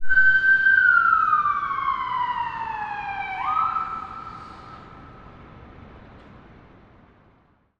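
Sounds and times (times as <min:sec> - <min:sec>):
distant ambulance siren passing in a city, Toronto: 0:00.0 - 0:05.7.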